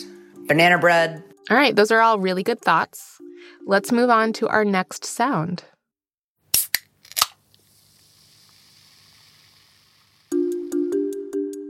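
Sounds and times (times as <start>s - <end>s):
speech: 0.5s - 5.7s
soda can opening clicks and pops: 6.5s - 7.7s
soda fizzing hiss: 7.5s - 11.0s.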